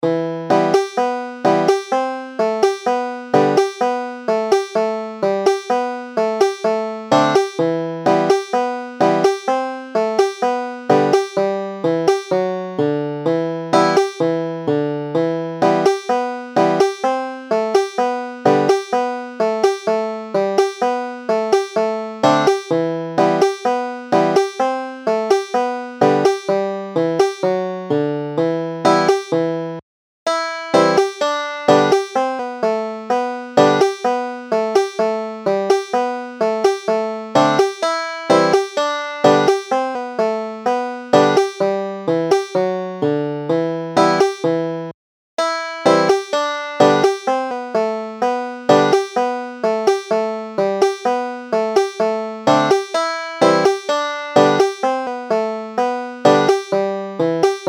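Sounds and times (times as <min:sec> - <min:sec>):
banjo: 0:00.0 - 0:57.6.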